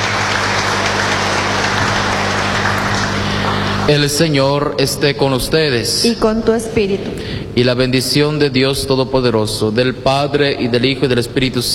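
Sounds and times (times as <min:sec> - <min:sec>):
audience applause: 0:00.0 - 0:04.9
low electrical hum: 0:00.0 - 0:11.7
speech: 0:03.9 - 0:11.7.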